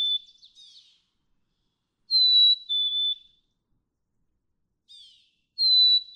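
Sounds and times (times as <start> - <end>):
Black-capped chickadee soft chattering: 0.2 - 1.1, 4.9 - 5.4.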